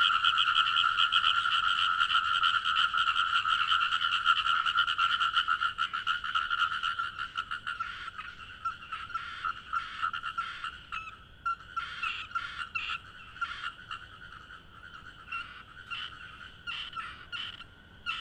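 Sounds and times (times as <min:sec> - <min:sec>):
frogs at night: 0:00.0 - 0:18.1.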